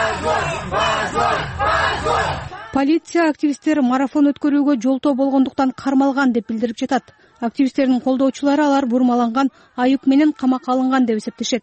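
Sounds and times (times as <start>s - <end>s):
supporters at a court hearing shouting shame in Kyrgyz at the verdict: 0.0s - 2.9s
speech: 2.8s - 11.6s.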